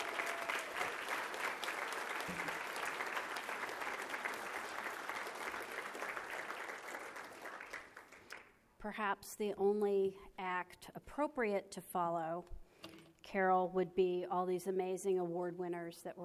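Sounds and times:
audience applause: 0.0 - 8.5
speech: 8.8 - 12.6, 13.3 - 16.2.

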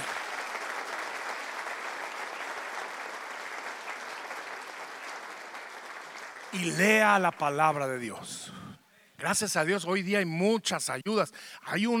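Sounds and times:
audience clapping: 0.0 - 8.1
speech: 6.5 - 8.6, 9.2 - 11.9.

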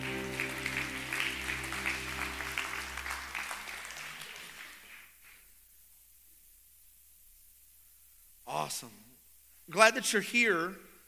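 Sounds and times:
sustained low instrumental chords: 0.0 - 3.4
audience hand clapping: 0.0 - 5.5
speech: 8.7 - 9.0, 9.7 - 10.8.

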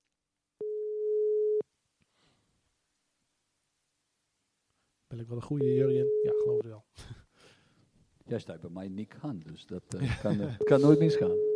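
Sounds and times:
telephone ringback tone while a call is being placed: 0.6 - 1.6, 5.6 - 6.6, 10.6 - 11.5
speech: 5.2 - 7.2, 8.3 - 11.5
laughter: 10.0 - 11.0.

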